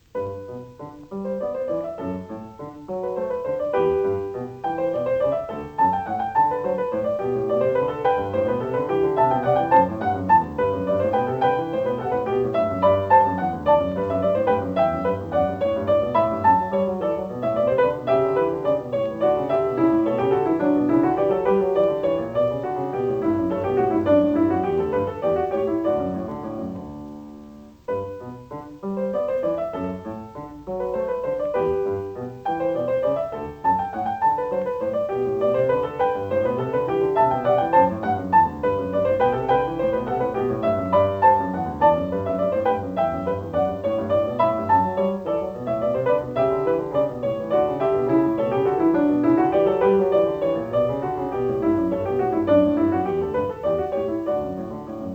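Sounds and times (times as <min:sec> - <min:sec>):
classical canon at the unison: 0:00.0 - 0:55.1.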